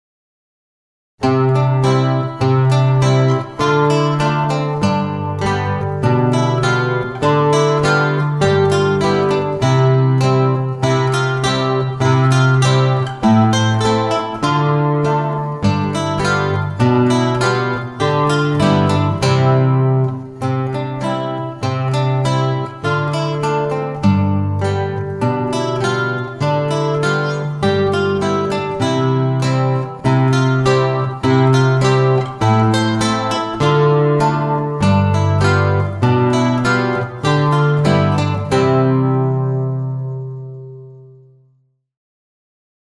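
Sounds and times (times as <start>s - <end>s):
guitar intermezzo: 1.2s - 41.7s.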